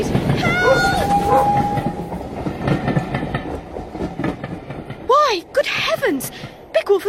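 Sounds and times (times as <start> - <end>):
express train approaching on the tracks: 0.0 - 7.0.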